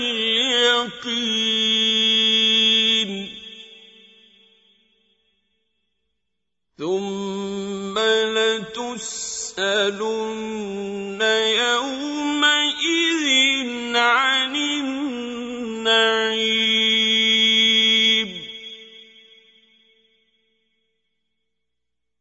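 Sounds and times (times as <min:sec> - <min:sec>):
qari reciting the Quran: 0:00.0 - 0:04.7, 0:06.8 - 0:19.4.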